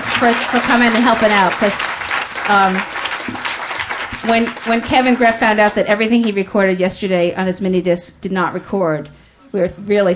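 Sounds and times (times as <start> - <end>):
conference audience applauding WBIX during a keynote session: 0.0 - 5.7
speech: 0.2 - 3.5, 4.2 - 10.1.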